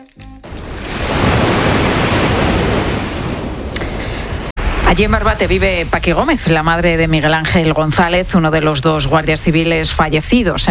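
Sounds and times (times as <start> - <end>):
waves washing onto a shore: 0.4 - 9.9
faint breezy hiss: 3.8 - 10.2
speech: 5.0 - 10.6.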